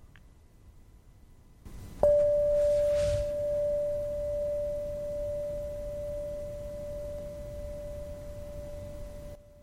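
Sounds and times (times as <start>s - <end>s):
meditation bell ringing: 2.0s - 9.6s.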